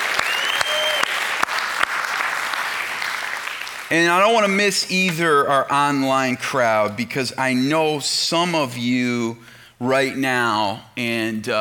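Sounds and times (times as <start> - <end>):
faint cheering voices: 0.0 - 1.4
adults applauding: 0.0 - 4.6
brief whistle: 0.2 - 1.2
speech: 3.9 - 11.5.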